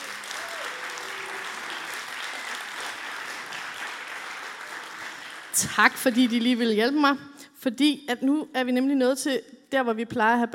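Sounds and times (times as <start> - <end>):
audience applause: 0.0 - 6.7
speech: 5.6 - 10.5.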